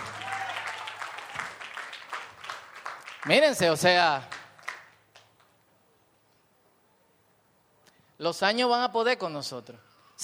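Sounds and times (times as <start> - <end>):
audience applause: 0.0 - 4.9
speech: 3.2 - 4.3, 8.2 - 10.2.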